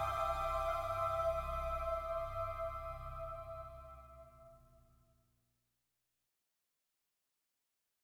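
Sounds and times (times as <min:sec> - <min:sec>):
Christmas carol: 0:00.0 - 0:04.5.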